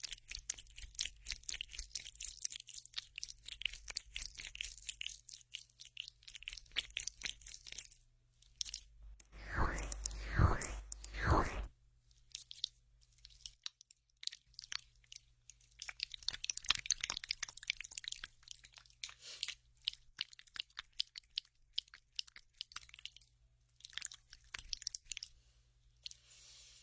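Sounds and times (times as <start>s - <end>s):
sticky crackly aloe gel squishing in ear spa: 0.0s - 26.3s
faint steady hum: 8.7s - 12.1s
louder swishing rub: 9.2s - 11.7s, 26.1s - 26.8s.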